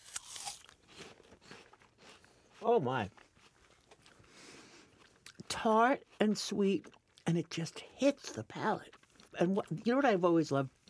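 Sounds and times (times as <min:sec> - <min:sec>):
biting into a red apple with white flesh: 0:00.0 - 0:04.2
speech: 0:02.6 - 0:03.2, 0:05.6 - 0:10.8.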